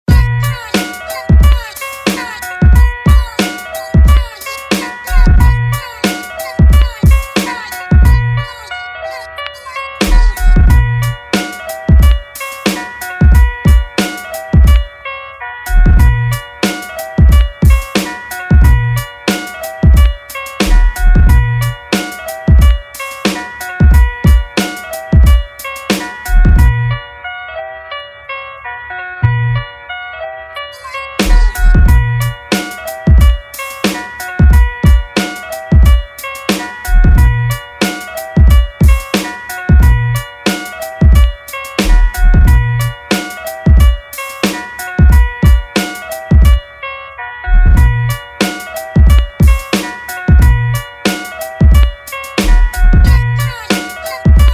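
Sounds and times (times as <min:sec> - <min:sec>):
instrumental music in B minor: 0:00.1 - 0:54.5.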